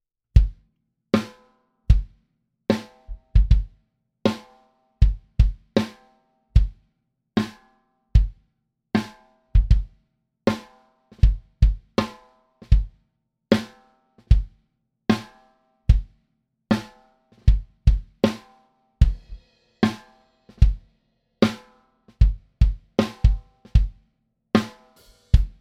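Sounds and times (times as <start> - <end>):
kick drum: 0.4 - 0.6, 1.9 - 2.1, 3.1 - 3.8, 5.0 - 5.7, 6.6 - 6.8, 8.2 - 8.4, 9.6 - 9.9, 11.2 - 12.0, 12.6 - 12.9, 14.3 - 14.6, 15.9 - 16.2, 17.4 - 18.2, 19.0 - 19.4, 20.6 - 20.8, 22.2 - 24.0, 25.4 - 25.5
snare drum: 10.5 - 12.8, 16.7 - 20.8, 21.4 - 23.9, 24.6 - 25.5.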